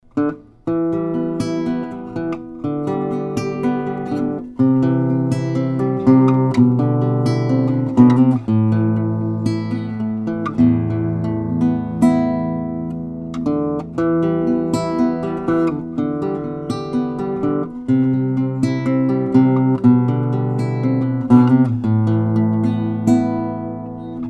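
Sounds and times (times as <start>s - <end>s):
cheap guitar: 0.0s - 24.2s.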